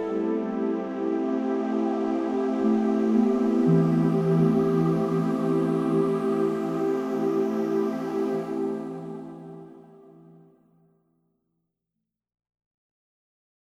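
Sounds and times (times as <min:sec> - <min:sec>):
organ music: 0:00.0 - 0:09.9.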